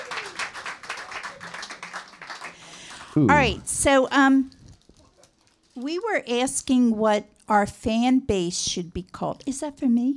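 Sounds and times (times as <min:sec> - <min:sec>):
small audience clapping: 0:00.0 - 0:03.7
speech: 0:03.2 - 0:04.6, 0:05.8 - 0:10.1.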